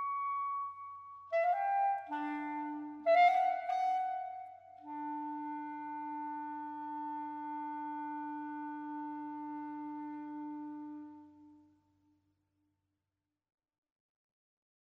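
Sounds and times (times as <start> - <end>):
clarinet solo: 0.0 - 11.6.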